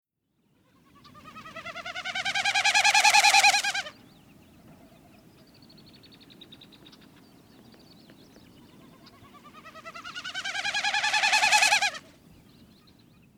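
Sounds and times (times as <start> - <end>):
Wilson's snipe calling: 0.9 - 4.0, 8.6 - 12.1.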